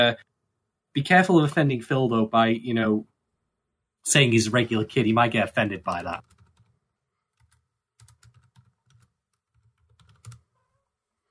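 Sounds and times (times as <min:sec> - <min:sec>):
speech: 0:00.0 - 0:00.3, 0:01.0 - 0:03.1, 0:04.0 - 0:06.3
typing on a computer keyboard: 0:05.9 - 0:06.7, 0:07.4 - 0:10.4.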